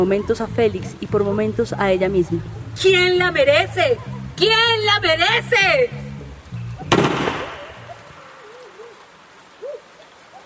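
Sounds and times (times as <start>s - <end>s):
speech: 0.0s - 6.0s
gunshot fired into the air: 6.9s - 7.8s.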